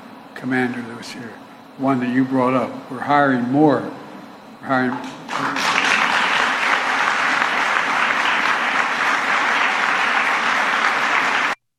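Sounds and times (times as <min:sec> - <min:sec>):
speech: 0:00.4 - 0:04.0, 0:04.6 - 0:05.5
audience applause: 0:05.0 - 0:11.6.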